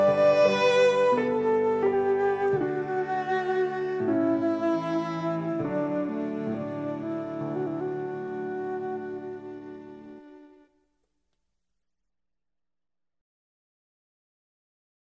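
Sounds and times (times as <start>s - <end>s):
instrumental hymn: 0.0s - 10.7s.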